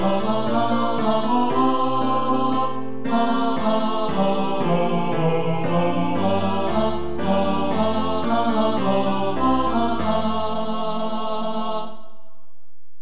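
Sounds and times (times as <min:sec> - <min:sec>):
tenor singing: 0:00.0 - 0:12.1.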